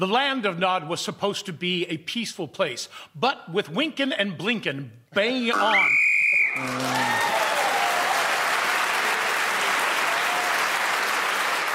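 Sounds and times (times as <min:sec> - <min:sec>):
speech: 0:00.0 - 0:07.4
whistle ending the round: 0:05.7 - 0:06.7
applause: 0:06.5 - 0:11.7.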